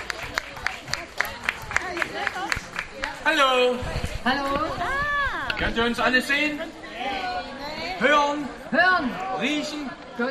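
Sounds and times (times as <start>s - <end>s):
audience applause: 0.0s - 3.4s
speech: 3.3s - 7.2s, 8.0s - 10.2s.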